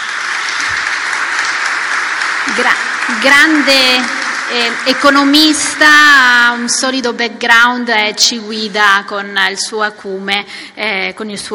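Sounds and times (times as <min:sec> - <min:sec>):
applause: 0:00.0 - 0:06.9
speech: 0:02.6 - 0:11.5.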